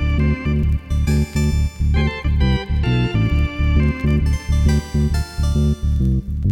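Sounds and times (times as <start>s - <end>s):
keyboard playing: 0.1s - 6.4s.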